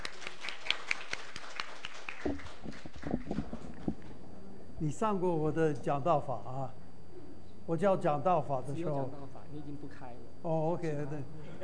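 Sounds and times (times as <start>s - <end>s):
audience applause: 0.0s - 3.7s
speech: 2.2s - 3.4s, 4.8s - 6.8s, 7.7s - 11.6s.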